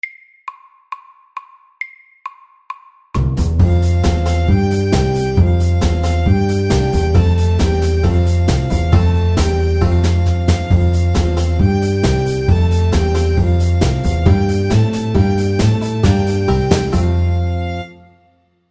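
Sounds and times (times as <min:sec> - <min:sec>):
square dance music: 0:03.3 - 0:17.9.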